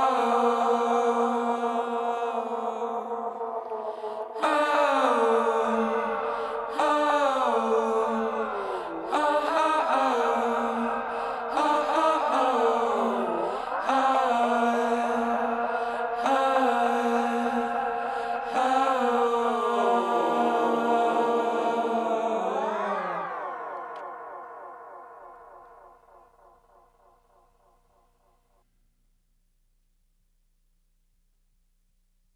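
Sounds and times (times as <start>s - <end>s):
person singing: 0.0s - 25.4s.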